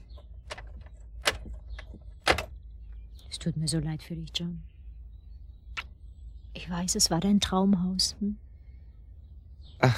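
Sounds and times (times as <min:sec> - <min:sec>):
key locking a house door: 0:00.4 - 0:02.6
speech: 0:03.4 - 0:04.7, 0:06.7 - 0:08.4, 0:09.8 - 0:09.9.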